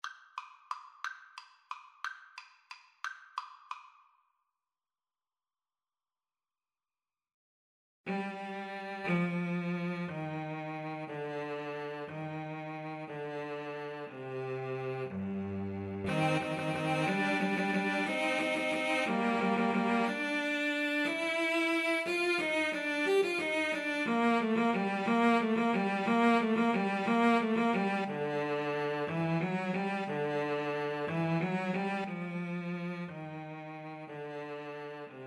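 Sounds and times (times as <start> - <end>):
violin and cello duet: 8.1 - 35.2.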